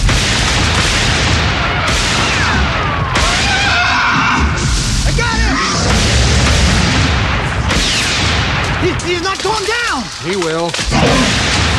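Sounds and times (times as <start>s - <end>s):
gunshots: 0.0s - 5.0s, 5.6s - 11.7s
loud dense roar of noise: 1.6s - 7.7s.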